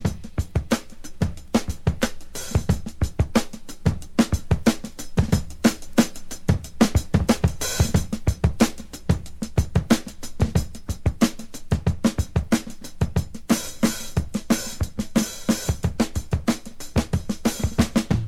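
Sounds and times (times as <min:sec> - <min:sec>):
drum break loops: 0:00.0 - 0:18.2.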